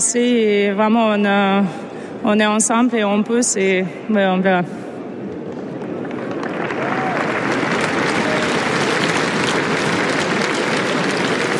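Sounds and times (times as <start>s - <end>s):
speech: 0.1s - 4.9s
audience applause: 5.8s - 11.5s.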